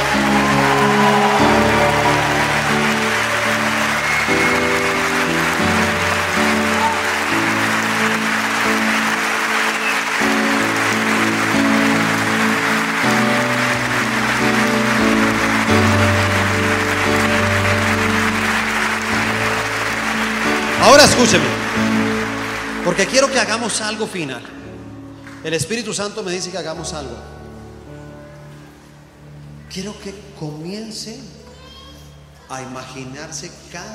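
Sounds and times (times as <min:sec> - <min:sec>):
audience applauding: 0:00.0 - 0:24.6
speech: 0:21.2 - 0:21.5, 0:22.9 - 0:24.6, 0:25.4 - 0:27.3, 0:29.8 - 0:31.4, 0:32.5 - 0:33.9.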